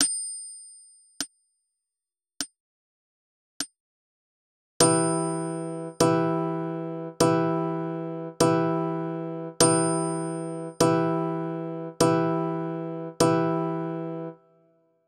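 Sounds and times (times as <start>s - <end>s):
chord on strings one two three and six: 4.8s - 14.5s.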